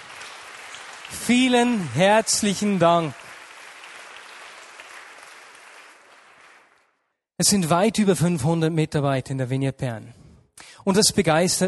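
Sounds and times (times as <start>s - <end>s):
church gathering audience applause thanking volunteers: 0.0s - 7.0s
speech: 1.1s - 3.2s, 7.4s - 10.2s, 10.8s - 11.6s.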